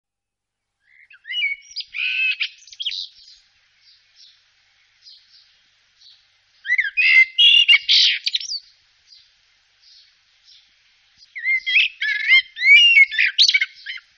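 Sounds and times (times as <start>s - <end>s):
Eurasian blackbird chattering: 0.9s - 4.4s, 6.6s - 9.2s, 11.2s - 14.1s.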